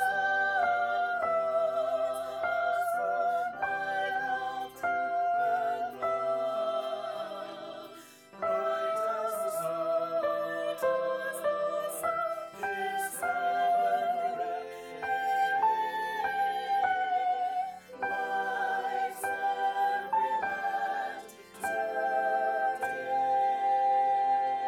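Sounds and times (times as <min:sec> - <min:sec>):
descant melody: 0:00.0 - 0:24.6.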